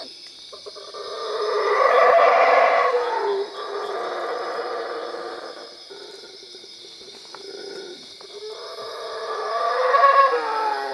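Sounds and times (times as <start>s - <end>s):
howler monkey howling at Cuevas: 1.1s - 5.7s, 7.5s - 10.9s.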